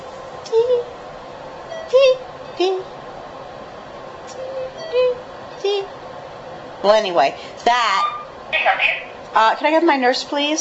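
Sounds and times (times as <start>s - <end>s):
steady low hum: 0.0s - 10.5s
chemotherapy infusion pump beeping: 1.7s - 2.0s, 4.4s - 5.6s
speech: 6.8s - 10.5s.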